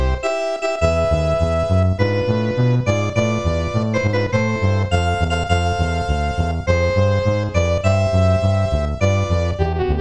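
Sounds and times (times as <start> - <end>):
ending music: 0.2 - 9.9.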